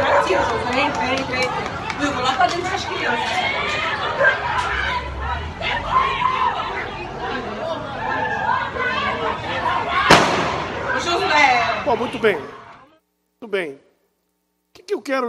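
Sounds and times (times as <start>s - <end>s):
crowd chattering and shouting: 0.0s - 13.0s
speech: 0.3s - 4.7s, 11.4s - 12.6s, 13.4s - 13.8s, 14.8s - 15.2s
police officer's gunshot: 10.1s - 10.8s.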